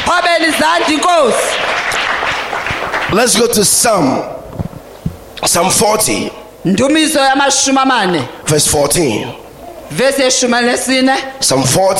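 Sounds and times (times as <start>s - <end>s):
audience clapping: 0.0s - 3.8s
speech: 0.1s - 1.9s, 3.1s - 4.4s, 5.4s - 11.9s.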